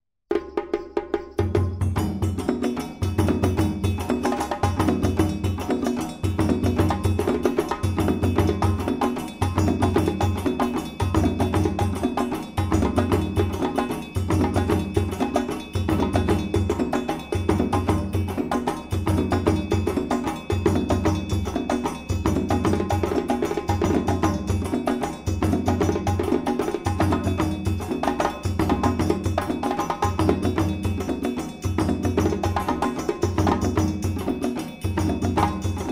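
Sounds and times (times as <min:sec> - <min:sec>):
fast full djembe solo: 0:00.3 - 0:35.9.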